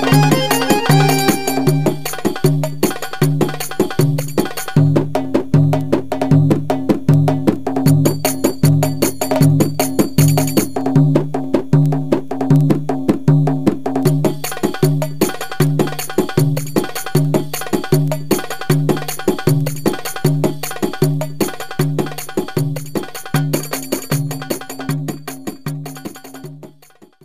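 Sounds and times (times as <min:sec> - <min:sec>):
Arabic accordion playing: 0:00.0 - 0:02.2
darbuka solo: 0:00.0 - 0:27.2.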